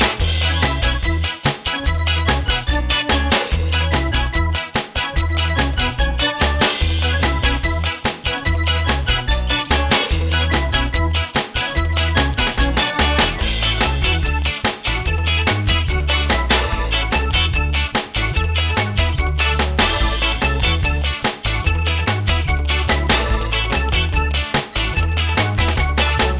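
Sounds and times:
ska music: 0:00.0 - 0:26.3.

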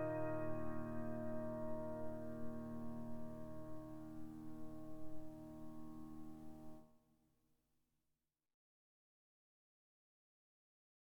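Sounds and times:
piano: 0:00.0 - 0:06.9.

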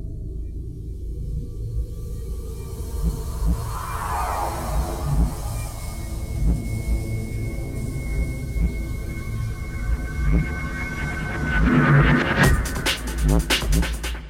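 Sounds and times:
cinematic music loop: 0:00.3 - 0:14.2.

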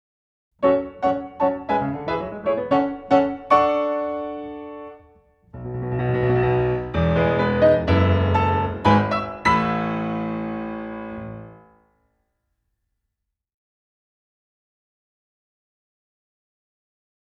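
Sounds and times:
piano solo: 0:00.6 - 0:11.8.

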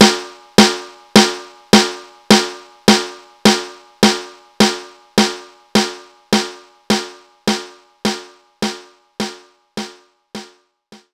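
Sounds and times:
standard snare drum: 0:00.0 - 0:11.1.

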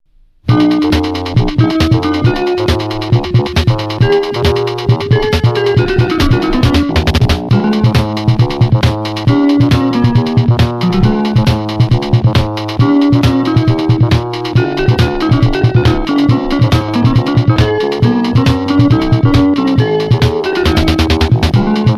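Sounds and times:
marimba: 0:00.5 - 0:21.9.

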